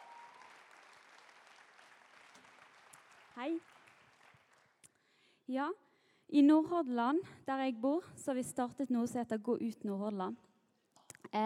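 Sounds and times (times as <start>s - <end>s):
audience applause: 0.0s - 4.8s
speech: 3.4s - 3.8s, 5.5s - 10.5s.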